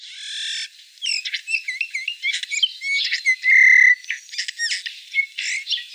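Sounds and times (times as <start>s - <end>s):
Eurasian bullfinch song: 0.0s - 5.9s.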